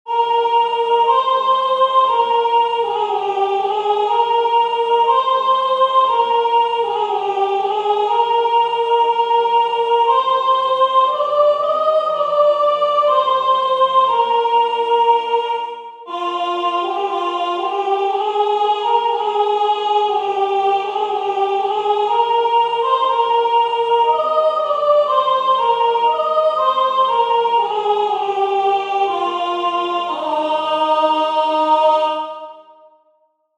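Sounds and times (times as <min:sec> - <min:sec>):
soprano singing: 0:00.1 - 0:32.8.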